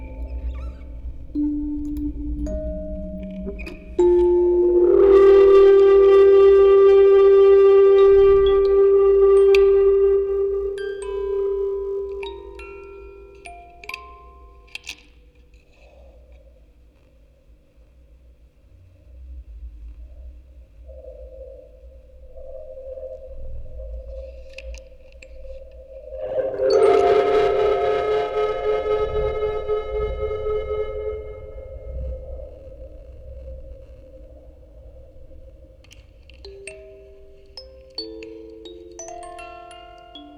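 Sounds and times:
music box quartet: 0:00.0 - 0:15.5, 0:24.5 - 0:32.1, 0:35.3 - 0:40.3
field recording ambience: 0:00.0 - 0:40.3.

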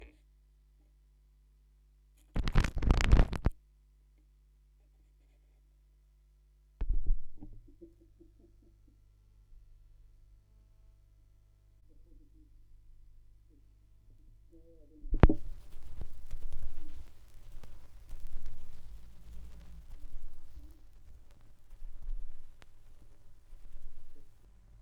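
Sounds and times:
vinyl record noise: 0:02.2 - 0:03.6, 0:15.0 - 0:24.7.

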